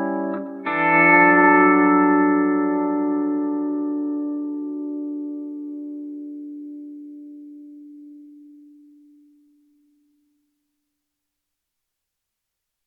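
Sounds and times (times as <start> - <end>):
pedal steel guitar in a concert hall: 0.0 - 9.4.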